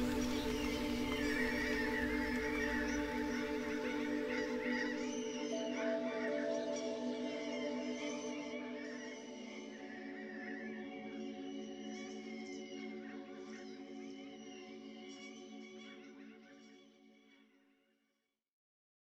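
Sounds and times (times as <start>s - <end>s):
soothing rain: 0.0s - 5.1s
birds singing: 0.0s - 15.8s.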